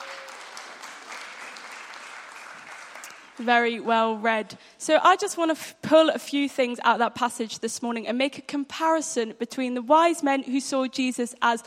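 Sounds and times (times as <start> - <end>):
audience clapping: 0.0 - 3.7
speech: 3.4 - 11.6.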